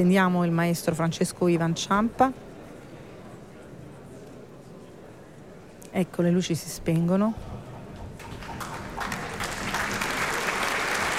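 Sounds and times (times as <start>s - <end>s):
speech: 0.0s - 2.4s, 6.0s - 7.6s
warm audience applause at opera house: 8.2s - 11.1s.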